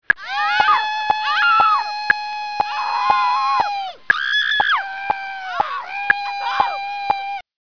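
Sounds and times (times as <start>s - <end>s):
person screaming: 0.2s - 7.4s.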